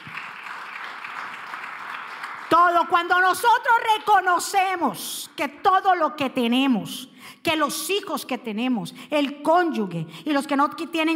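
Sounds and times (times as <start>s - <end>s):
audience applause: 0.0s - 2.6s
speech: 2.8s - 11.1s.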